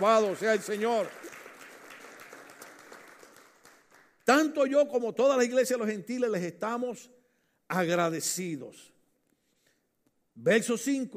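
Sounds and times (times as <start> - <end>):
speech: 0.0 - 1.3, 4.3 - 8.9, 10.4 - 11.1
audience applause: 0.0 - 4.1.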